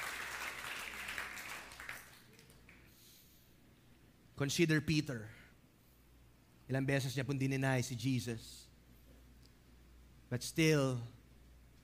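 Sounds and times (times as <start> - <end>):
church congregation applauding during a sermon: 0.0 - 2.9
speech: 4.4 - 5.4, 6.7 - 8.6, 10.3 - 11.2.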